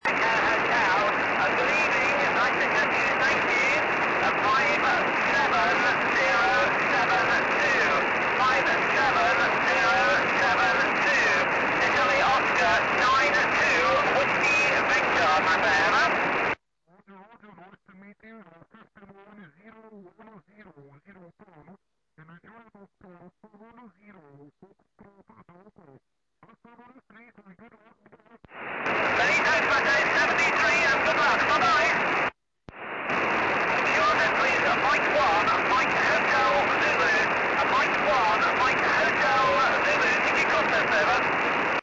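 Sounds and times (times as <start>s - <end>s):
70cm tropospheric radio signal: 0.0s - 16.6s, 28.5s - 41.8s.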